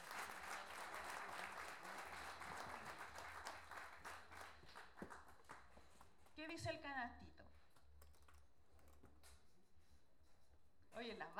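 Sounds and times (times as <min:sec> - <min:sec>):
audience applause at a national improvised-verse competition: 0:00.0 - 0:05.6
speech: 0:06.4 - 0:07.4, 0:11.0 - 0:11.3.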